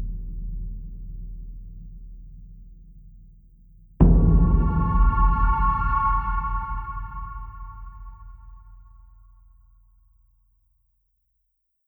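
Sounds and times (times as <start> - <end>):
drum: 4.0 - 8.3.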